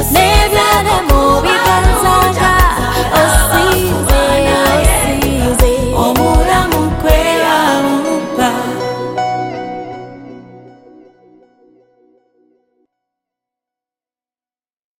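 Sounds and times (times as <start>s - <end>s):
choir singing: 0.0s - 9.2s.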